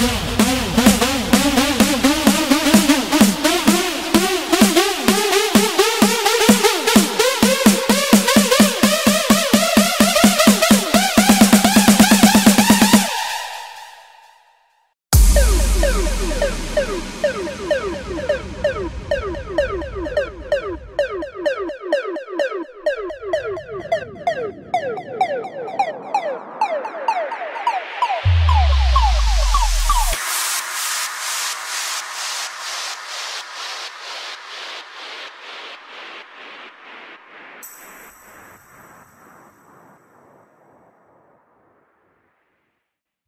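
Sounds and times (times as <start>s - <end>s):
house music effect sample: 0.0s - 13.8s, 15.1s - 31.0s.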